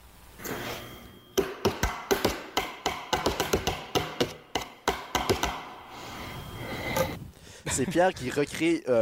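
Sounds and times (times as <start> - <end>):
wooden spoons tapping on plastic cups: 1.4 - 5.7
speech: 7.8 - 8.9.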